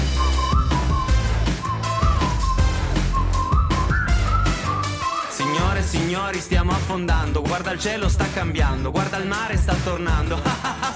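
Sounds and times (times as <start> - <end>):
bright whistled melody: 0.0 - 6.2
loud band backing with bass and drums: 0.0 - 10.9
speech: 6.3 - 10.9
laughter: 10.1 - 10.9.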